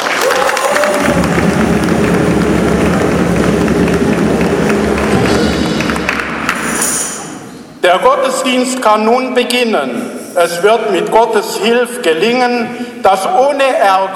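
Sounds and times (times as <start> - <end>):
crowd applauding in a church: 0.0 - 7.2
speech: 8.0 - 14.1.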